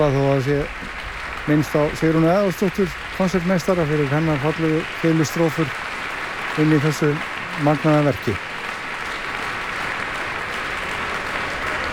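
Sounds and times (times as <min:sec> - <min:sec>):
speech: 0:00.0 - 0:00.9, 0:01.5 - 0:05.8, 0:06.6 - 0:08.5
packed concert hall audience applause: 0:00.0 - 0:11.9.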